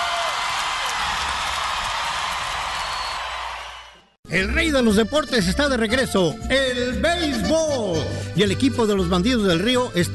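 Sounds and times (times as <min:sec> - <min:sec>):
audience applause: 0:00.0 - 0:04.1
speech: 0:04.3 - 0:10.1.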